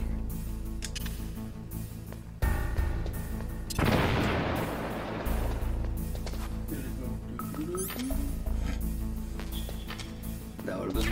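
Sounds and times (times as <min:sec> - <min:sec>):
low droning background: 0:00.0 - 0:11.1
scattered clicks: 0:00.8 - 0:01.2
grenade explosions: 0:03.8 - 0:05.6.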